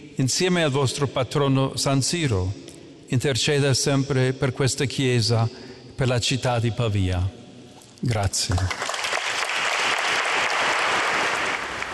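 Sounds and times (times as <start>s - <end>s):
speech: 0.2s - 7.4s, 8.0s - 8.9s
audience applause after a homily: 8.5s - 11.9s.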